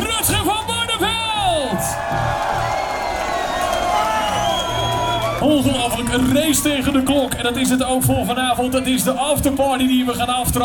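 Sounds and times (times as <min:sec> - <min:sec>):
crowd whooping and shouting: 0:00.0 - 0:07.6
audience applauding and cheering a singer: 0:00.0 - 0:08.0
speech: 0:05.6 - 0:10.6.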